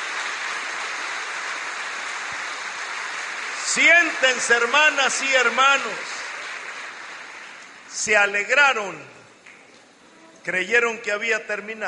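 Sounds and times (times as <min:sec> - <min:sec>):
audience applauding: 0:00.0 - 0:08.0
speech: 0:03.7 - 0:06.2, 0:08.0 - 0:09.2, 0:10.4 - 0:11.8.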